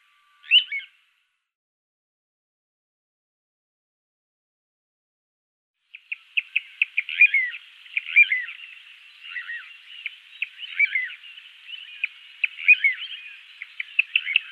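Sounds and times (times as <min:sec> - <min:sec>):
little ringed plover calling with downslurred whistles: 0:00.0 - 0:01.0, 0:05.9 - 0:14.5.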